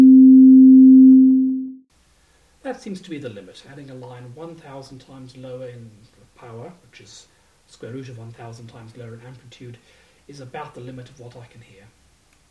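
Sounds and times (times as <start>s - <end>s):
two power notes: 0.2s - 1.8s.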